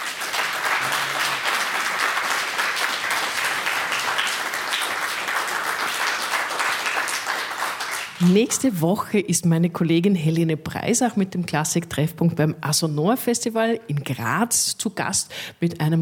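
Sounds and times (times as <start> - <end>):
audience applause: 0.0 - 8.4
speech: 8.2 - 16.0.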